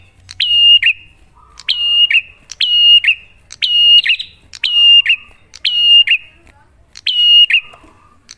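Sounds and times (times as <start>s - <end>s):
prinia rattling whistled song: 0.0s - 8.3s.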